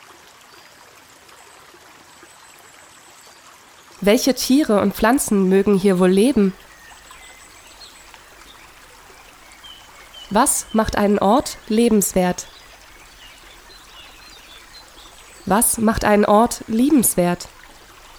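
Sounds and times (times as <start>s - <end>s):
speech: 4.0s - 6.6s, 10.3s - 12.6s, 15.5s - 17.6s
Riedbach brook water rushing: 4.0s - 18.1s.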